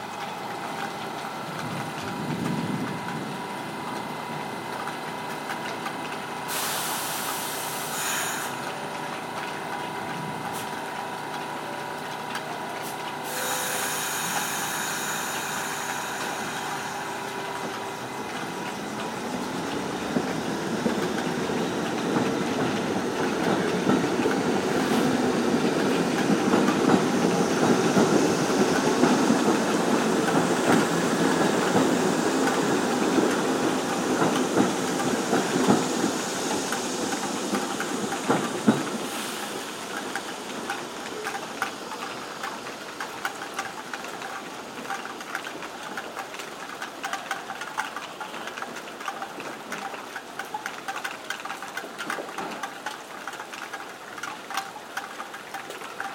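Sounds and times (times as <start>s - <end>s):
rain: 0.0s - 56.1s
train: 0.0s - 56.1s.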